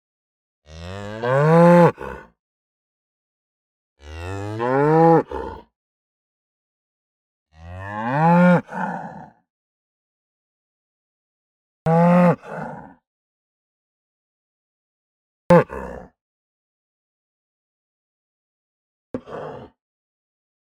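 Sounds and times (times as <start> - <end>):
cow mooing: 0.7 - 1.9, 4.0 - 5.3, 7.6 - 9.0.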